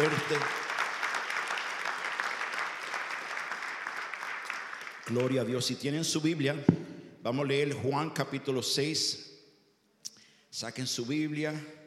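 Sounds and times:
speech: 0.0 - 0.6, 5.1 - 9.3, 10.5 - 11.8
crowd clapping: 0.0 - 5.8.

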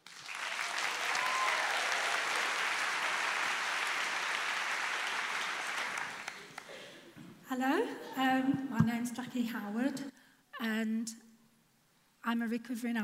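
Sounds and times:
audience round of applause: 0.0 - 7.0
speech: 7.5 - 11.2, 12.2 - 13.0.

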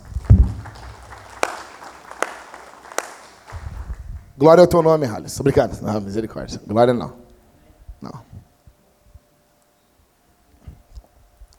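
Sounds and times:
low rumbling thumps: 0.0 - 1.2, 3.5 - 4.4
scattered hand claps: 0.0 - 4.3
speech: 4.4 - 7.2, 8.0 - 8.3.

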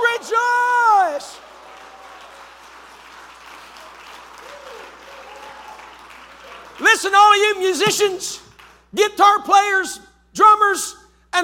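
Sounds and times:
audience cheering: 0.0 - 7.2
audience clapping: 0.0 - 8.9
speech: 7.0 - 11.4.

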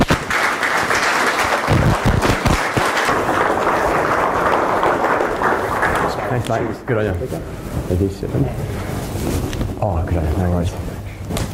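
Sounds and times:
audience applause: 0.0 - 7.0
speech: 6.5 - 10.9.

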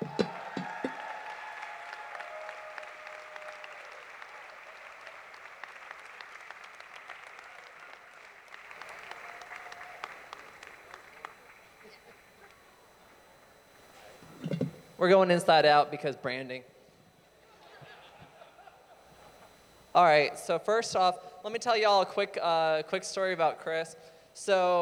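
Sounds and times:
laughter: 0.0 - 1.2, 17.4 - 19.6
audience applauding the tech production crew: 0.0 - 14.5
speech: 15.0 - 16.8, 20.0 - 24.8.

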